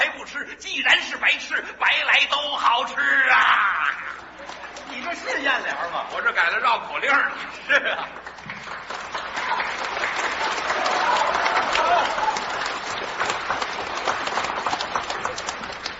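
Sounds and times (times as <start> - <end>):
speech: 0.3 - 8.4
audience applause at comedy show: 4.0 - 5.2, 8.0 - 15.9
laughter: 7.4 - 8.4.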